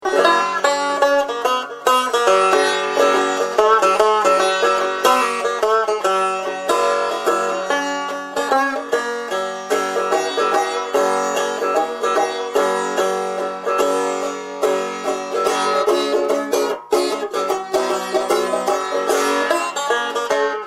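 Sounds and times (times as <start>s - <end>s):
banjo: 0.0s - 20.6s.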